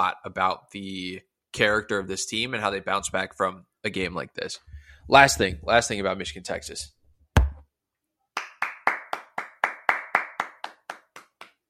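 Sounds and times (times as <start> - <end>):
speech: 0.0 - 7.0
clapping: 8.4 - 11.6.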